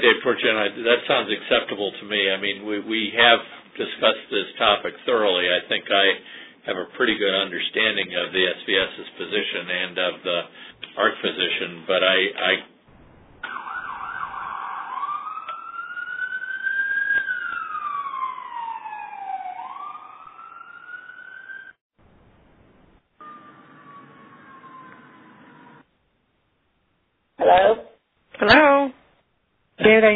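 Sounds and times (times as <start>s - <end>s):
speech: 0.0s - 12.7s, 29.9s - 30.1s
siren wailing on a phone call: 13.1s - 21.8s, 23.2s - 25.9s.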